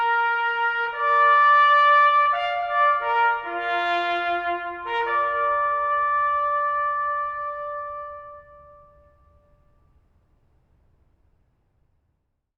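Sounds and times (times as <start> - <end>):
bugle call: 0.0 - 9.8.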